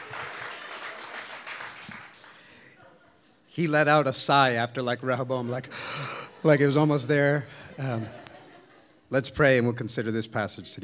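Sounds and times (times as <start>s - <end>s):
crowd applauding: 0.0s - 2.8s
laughter: 2.6s - 3.5s, 5.9s - 9.6s
speech: 3.6s - 8.2s, 9.1s - 10.8s.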